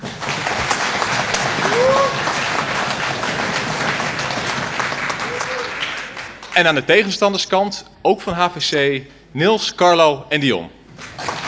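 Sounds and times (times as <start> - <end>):
crowd applauding: 0.0 - 6.8, 11.0 - 11.4
speech: 6.6 - 10.8.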